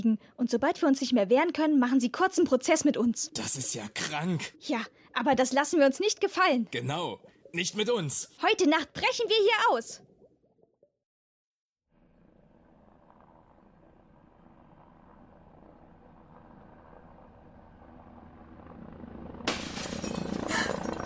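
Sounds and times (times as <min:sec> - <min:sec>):
speech: 0:00.0 - 0:10.1
window glass being smashed: 0:19.5 - 0:20.7.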